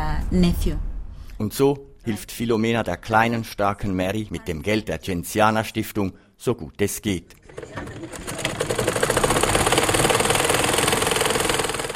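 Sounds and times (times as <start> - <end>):
speech: 0.3 - 8.4
tailor's sewing machine on a veranda of a wooden house: 7.3 - 11.9.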